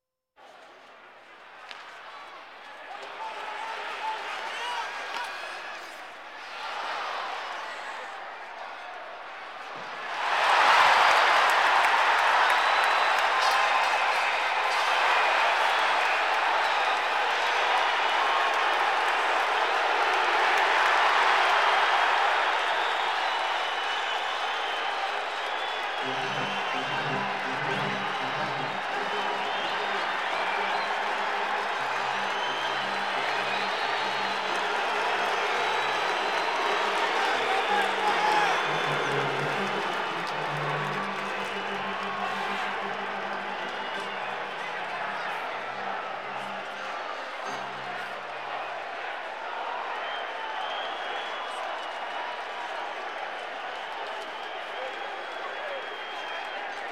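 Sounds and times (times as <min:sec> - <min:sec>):
sports crowd: 0:00.4 - 0:56.9.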